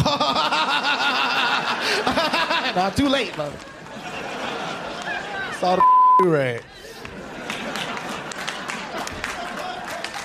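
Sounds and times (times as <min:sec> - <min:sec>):
laughter: 0:00.0 - 0:05.8, 0:06.7 - 0:10.2
speech: 0:02.8 - 0:03.8, 0:05.6 - 0:06.8
audience clapping: 0:02.9 - 0:05.4, 0:06.9 - 0:10.2.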